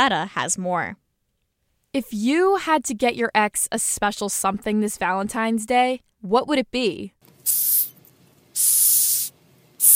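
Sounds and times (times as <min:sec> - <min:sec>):
speech: 0:00.0 - 0:01.0, 0:01.9 - 0:07.9
Madagascar hissing cockroach hissing: 0:07.5 - 0:08.0, 0:08.6 - 0:09.9.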